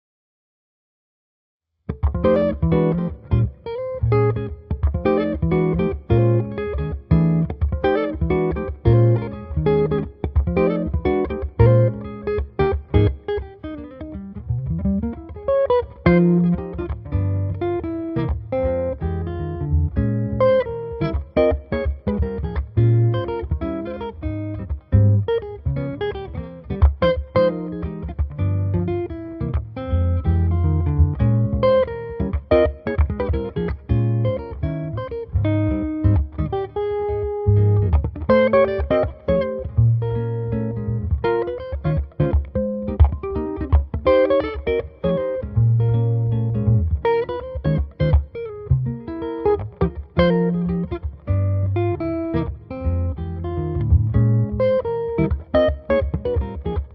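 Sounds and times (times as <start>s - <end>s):
guitar cover: 1.9s - 56.9s.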